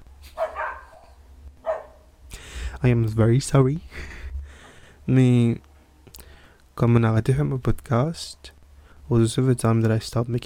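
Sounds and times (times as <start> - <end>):
dogs barking: 0.2 - 2.1
speech: 2.8 - 4.1, 5.1 - 5.7, 6.8 - 10.4.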